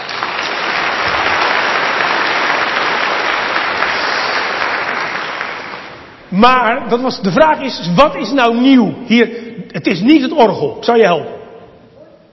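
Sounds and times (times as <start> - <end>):
audience applause: 0.0 - 6.2
speech: 6.4 - 11.4.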